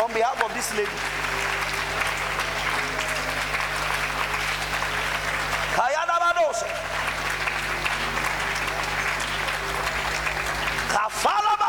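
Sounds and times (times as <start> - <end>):
audience clapping hands: 0.0 - 11.6
speech: 0.1 - 1.6.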